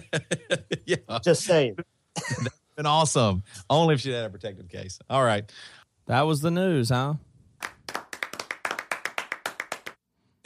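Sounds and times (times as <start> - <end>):
laughter: 0.0 - 2.6
speech: 0.1 - 7.7
small half-hearted hand clap: 7.6 - 10.0.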